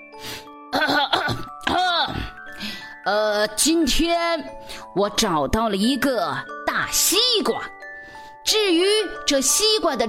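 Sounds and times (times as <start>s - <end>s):
throat clearing: 0.7s - 2.4s
speech: 3.1s - 7.8s, 8.5s - 10.0s.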